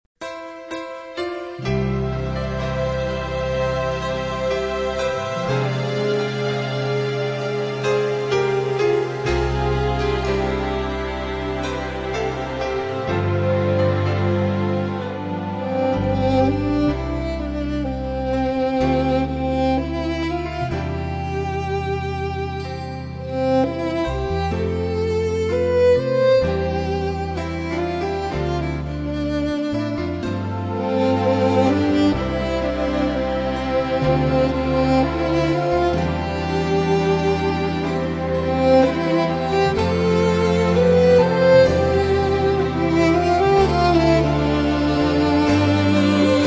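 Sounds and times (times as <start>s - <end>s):
instrumental praise music: 0.2s - 46.4s.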